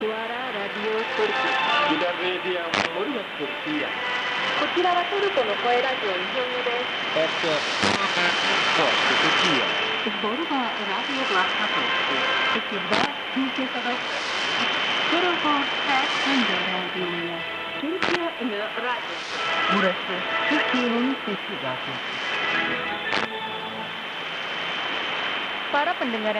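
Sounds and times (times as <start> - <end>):
shortwave radio signal at 17530kHz: 0.0 - 26.3.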